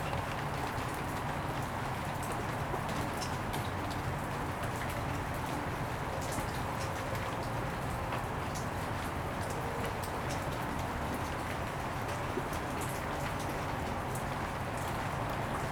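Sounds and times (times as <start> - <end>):
rain on concrete in an alley: 0.0 - 15.7.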